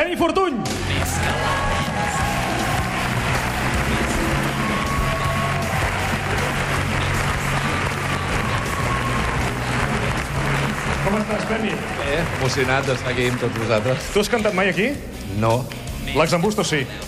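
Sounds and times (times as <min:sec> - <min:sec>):
speech: 0:00.0 - 0:02.2, 0:11.1 - 0:17.0
audience applause: 0:00.8 - 0:14.8.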